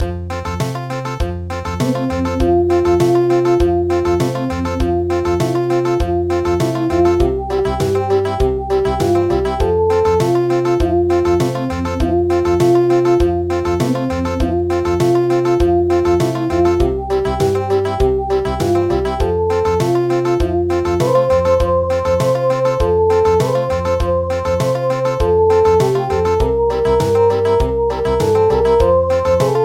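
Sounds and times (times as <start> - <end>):
country midi music: 0.0 - 29.6.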